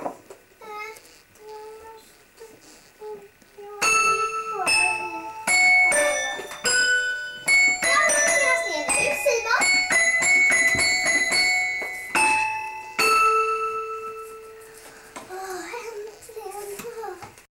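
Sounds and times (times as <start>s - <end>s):
piano instrumental: 3.8s - 15.6s.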